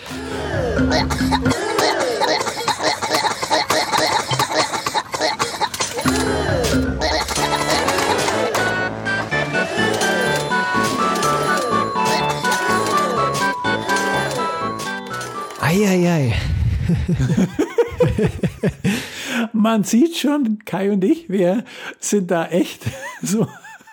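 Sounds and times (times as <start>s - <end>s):
laughter: 0.0s - 15.6s, 16.8s - 19.1s, 22.8s - 23.9s
speech: 0.8s - 1.6s, 17.1s - 17.5s, 19.7s - 23.6s
warped eerie carnival-style theme park game ride music: 6.0s - 16.3s.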